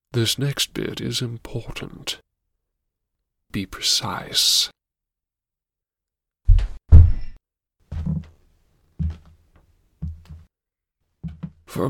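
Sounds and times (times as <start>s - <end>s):
speech: 0.2s - 2.3s, 3.5s - 4.7s
footsteps: 7.9s - 8.4s, 9.0s - 10.5s, 11.2s - 11.8s.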